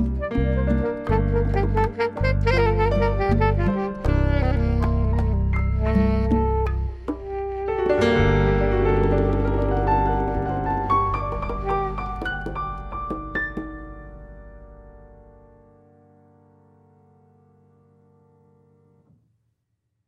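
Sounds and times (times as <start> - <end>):
jazz music: 0.0 - 15.5.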